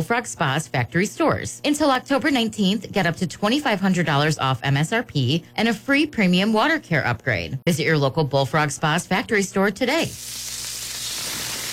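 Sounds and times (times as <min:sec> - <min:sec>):
speech: 0:00.0 - 0:10.6
smash burgers sizzling at JC's North restaurant: 0:10.0 - 0:11.7.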